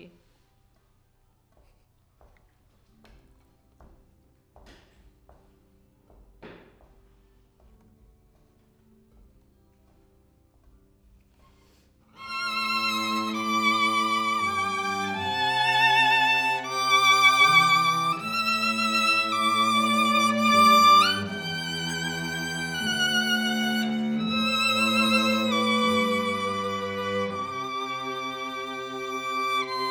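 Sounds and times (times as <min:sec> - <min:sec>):
violin: 0:12.1 - 0:29.8.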